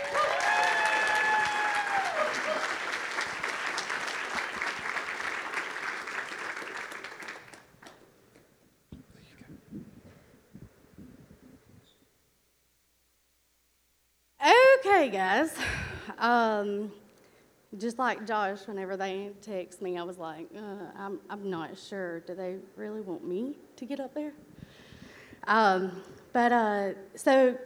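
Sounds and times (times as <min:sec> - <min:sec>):
crowd whooping and cheering: 0:00.0 - 0:07.4
crowd clapping: 0:00.0 - 0:08.5
speech: 0:15.0 - 0:17.0, 0:17.7 - 0:24.5, 0:25.5 - 0:27.6.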